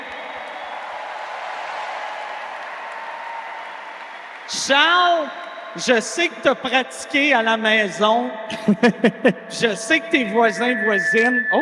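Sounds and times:
audience applause: 0.0s - 5.7s
speech: 4.5s - 11.6s
laughter: 8.5s - 9.8s.

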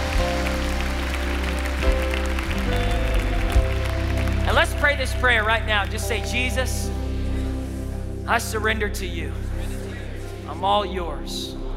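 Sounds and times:
audience applauding: 0.0s - 6.4s
sustained low musical tones: 0.0s - 11.7s
speech: 5.0s - 7.0s, 8.3s - 9.5s, 10.6s - 11.6s.

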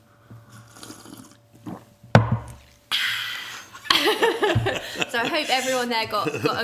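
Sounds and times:
big slurp of decaffeinated tea: 0.4s - 1.9s
laughter: 3.8s - 6.6s
speech: 4.1s - 6.6s.

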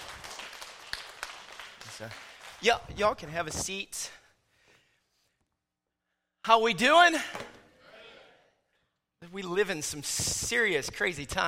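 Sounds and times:
audience applause: 0.0s - 2.6s
speech: 2.0s - 4.2s, 6.4s - 7.4s, 9.3s - 11.4s.

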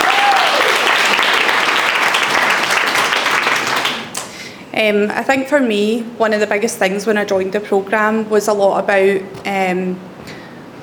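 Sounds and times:
vocal whoop: 0.0s - 0.9s
crowd applauding: 0.0s - 4.4s
speech: 4.8s - 10.1s.

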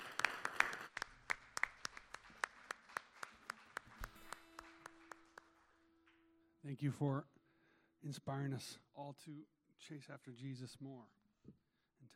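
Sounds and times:
round of applause: 0.0s - 6.3s
speech: 6.7s - 7.3s, 8.0s - 11.6s.

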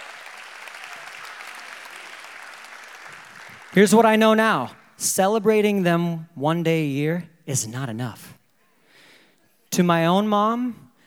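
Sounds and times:
audience applauding: 0.0s - 5.0s
speech: 3.7s - 8.4s, 9.8s - 10.8s.

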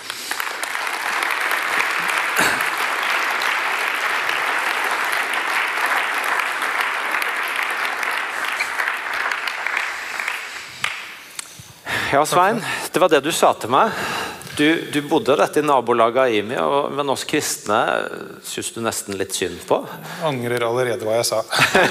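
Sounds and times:
audience applause welcoming a guest: 0.0s - 11.2s
speech: 12.1s - 21.8s
laughter: 21.5s - 21.8s.

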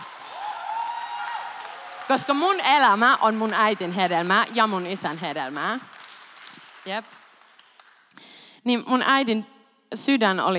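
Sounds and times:
audience applause: 0.0s - 8.2s
speech: 2.1s - 5.9s, 6.8s - 7.2s, 8.6s - 10.5s.

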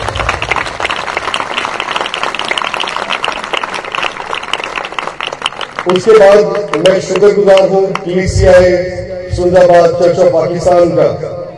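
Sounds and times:
audience applause: 0.0s - 7.7s
speech: 5.8s - 11.3s.

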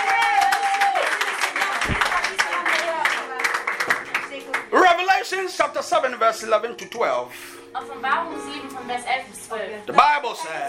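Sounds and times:
audience clapping: 0.0s - 5.0s
speech: 5.4s - 10.6s.

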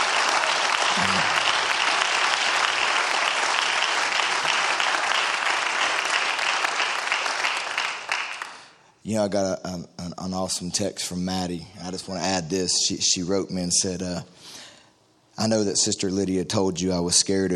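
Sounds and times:
audience applause: 0.0s - 8.7s
speech: 9.1s - 14.6s, 15.4s - 17.5s.

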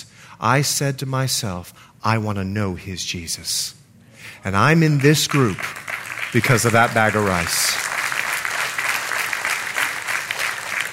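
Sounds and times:
speech: 0.4s - 7.8s
crowd clapping: 4.6s - 10.9s.

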